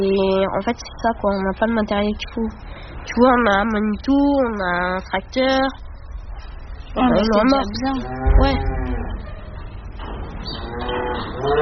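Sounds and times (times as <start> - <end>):
speech: 0.0 - 5.9, 6.9 - 8.8, 10.8 - 11.5
cow mooing: 7.1 - 9.6, 10.6 - 11.5.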